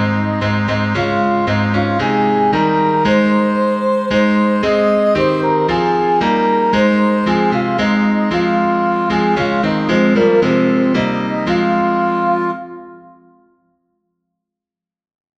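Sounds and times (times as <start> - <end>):
soprano singing: 0.0 - 13.5.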